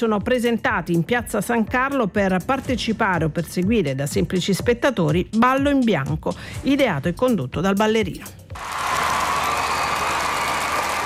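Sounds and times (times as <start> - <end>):
speech: 0.0 - 8.8
large crowd applauding in Piazza San Carlo, Turin, at an open-air dance event: 8.6 - 11.0.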